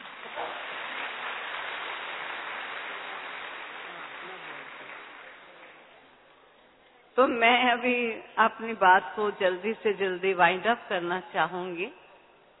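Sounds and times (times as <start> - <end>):
audience clapping: 0.0 - 6.1
speech: 7.2 - 12.0.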